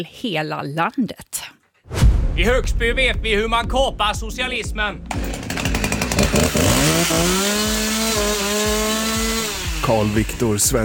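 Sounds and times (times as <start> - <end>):
speech: 0.0 - 5.4, 6.4 - 8.8, 9.9 - 10.8
chainsaw running: 5.1 - 10.8.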